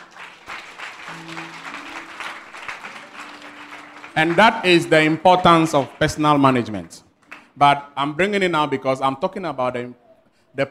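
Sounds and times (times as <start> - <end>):
audience applause: 0.0 - 7.6
speech: 4.2 - 7.0, 7.6 - 10.6.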